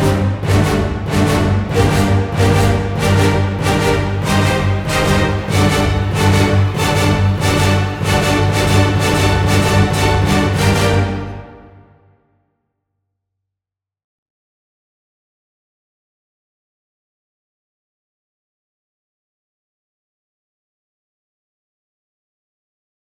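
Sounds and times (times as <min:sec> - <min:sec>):
strings: 0:00.0 - 0:12.1
brass: 0:00.0 - 0:12.3.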